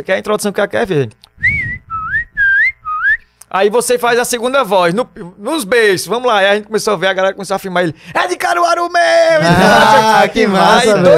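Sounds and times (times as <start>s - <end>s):
speech: 0.0s - 1.6s, 3.5s - 11.1s
whistled fife-style tune: 1.4s - 3.3s
laughter: 9.4s - 11.1s.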